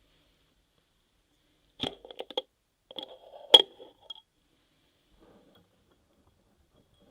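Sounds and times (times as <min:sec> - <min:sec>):
ear massage rubbing, stroking and tapping: 0:01.8 - 0:04.2.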